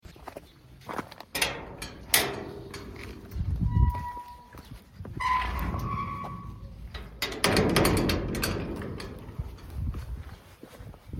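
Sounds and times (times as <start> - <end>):
cemetery exit gate: 1.3 - 10.2.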